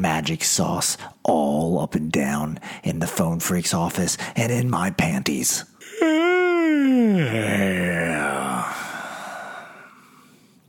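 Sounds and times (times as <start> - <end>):
speech: 0.1 - 6.2, 7.0 - 8.5
long loud human yawn: 5.8 - 10.2.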